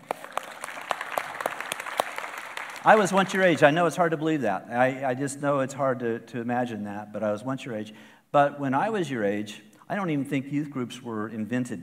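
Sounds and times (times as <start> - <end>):
audience applause: 0.0 - 3.6
speech: 2.8 - 11.8.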